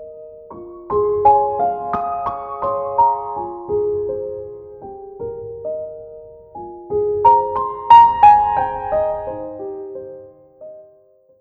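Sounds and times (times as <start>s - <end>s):
beautiful melodies: 0.9s - 4.6s, 7.2s - 10.3s.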